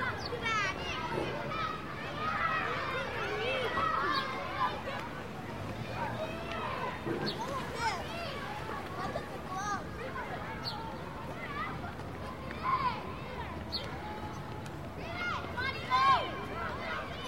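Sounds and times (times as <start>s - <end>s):
children playing in a schoolyard: 0.0s - 17.2s.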